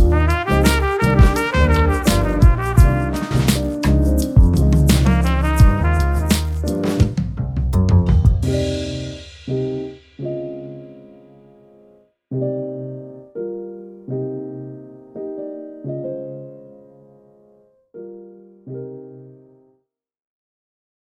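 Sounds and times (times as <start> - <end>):
lofi music: 0.0 - 11.1.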